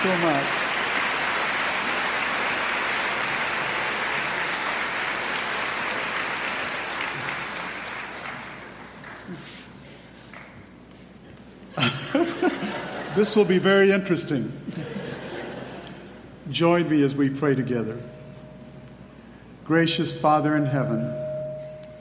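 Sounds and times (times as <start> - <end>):
speech: 0.0 - 0.6, 13.2 - 14.8, 16.6 - 18.2, 19.7 - 21.2
crowd applause: 0.0 - 9.6
laughter: 11.7 - 13.7, 14.6 - 16.3.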